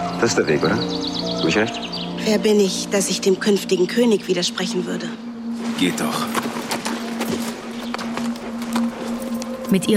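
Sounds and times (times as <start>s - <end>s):
speech: 0.2s - 5.2s, 5.8s - 6.5s, 9.7s - 9.9s
horse hooves clopping as a rider rides away: 6.3s - 9.9s.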